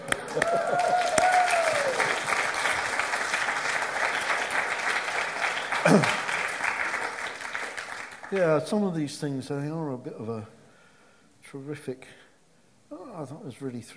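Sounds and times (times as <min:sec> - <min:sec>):
audience clapping: 0:00.0 - 0:09.0
speech: 0:05.9 - 0:06.2, 0:08.3 - 0:10.6, 0:11.5 - 0:12.2, 0:13.2 - 0:13.9.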